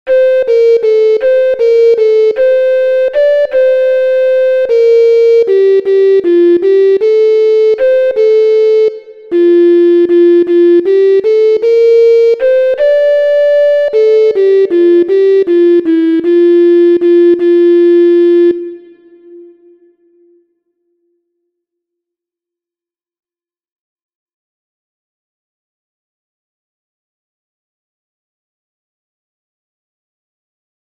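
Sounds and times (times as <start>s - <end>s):
MIDI music: 0.1s - 20.5s.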